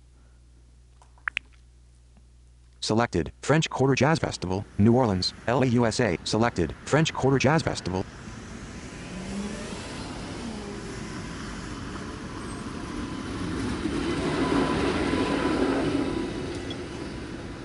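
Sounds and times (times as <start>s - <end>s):
speech: 2.8s - 8.1s
streetcar passing on rails: 6.8s - 17.6s.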